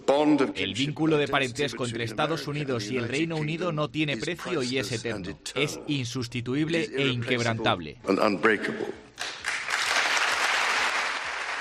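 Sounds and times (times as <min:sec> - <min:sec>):
speech: 0:00.2 - 0:09.3
large crowd applause for the king: 0:09.2 - 0:11.5.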